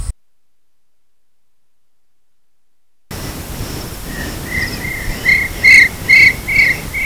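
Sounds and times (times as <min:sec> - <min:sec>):
large hawk-cuckoo shrill whistles: 0:03.1 - 0:07.0.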